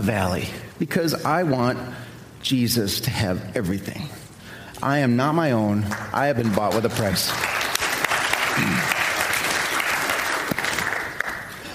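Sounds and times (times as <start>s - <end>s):
speech: 0.0s - 4.2s, 4.8s - 7.6s
audience applause: 5.9s - 11.7s.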